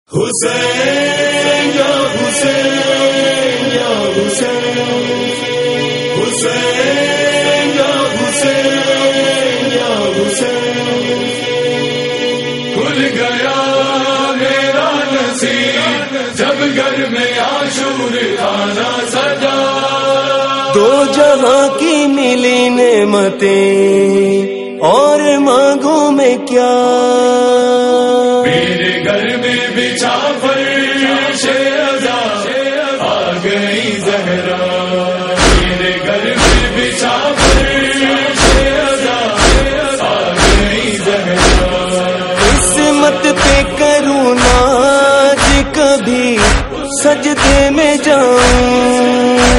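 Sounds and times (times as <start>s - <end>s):
noha lament recitation: 0.1s - 49.5s.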